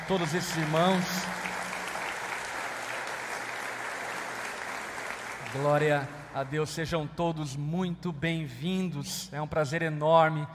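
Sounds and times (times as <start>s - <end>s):
audience applause: 0.0s - 6.3s
speech: 0.1s - 1.5s, 5.5s - 10.5s.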